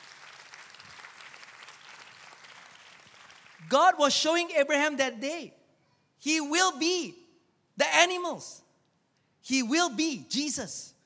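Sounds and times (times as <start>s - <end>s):
audience applause: 0.0s - 3.6s
speech: 3.6s - 5.6s, 6.2s - 7.2s, 7.8s - 8.6s, 9.4s - 10.9s.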